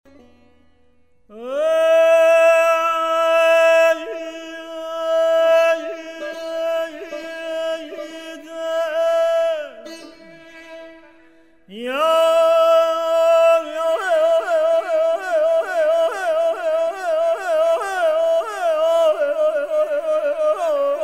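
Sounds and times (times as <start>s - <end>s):
oceanic chant: 1.3s - 9.8s, 11.7s - 21.0s.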